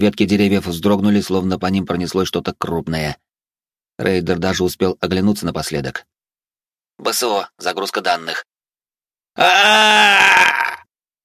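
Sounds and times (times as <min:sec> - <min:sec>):
speech: 0:00.0 - 0:03.2, 0:04.0 - 0:06.2, 0:07.0 - 0:08.5, 0:09.4 - 0:10.8
scream choking off: 0:09.4 - 0:10.9.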